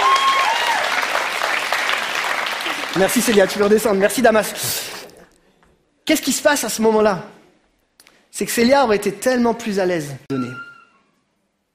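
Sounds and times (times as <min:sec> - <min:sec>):
audience applause: 0:00.0 - 0:05.2
speech: 0:03.0 - 0:05.0, 0:06.1 - 0:07.4, 0:08.4 - 0:10.7.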